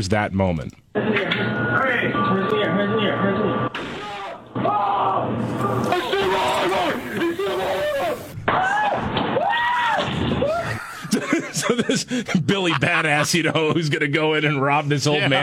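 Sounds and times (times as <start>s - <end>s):
speech: 0.0s - 3.4s, 11.7s - 15.4s
crowd noise: 1.0s - 9.2s
sharp gunshot bang: 3.7s - 4.8s
loud agitated shouting voices: 3.8s - 10.7s
laughter: 10.4s - 14.3s.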